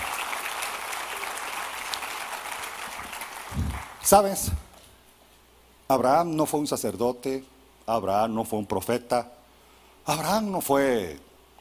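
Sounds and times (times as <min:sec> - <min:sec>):
audience applauding: 0:00.0 - 0:04.6
speech: 0:03.6 - 0:04.6, 0:05.9 - 0:09.4, 0:10.1 - 0:11.3.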